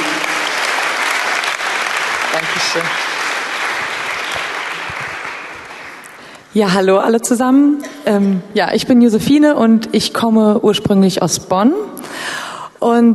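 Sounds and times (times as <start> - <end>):
audience applause: 0.0 - 6.3
speech: 2.6 - 3.1, 6.6 - 11.9, 12.8 - 13.1.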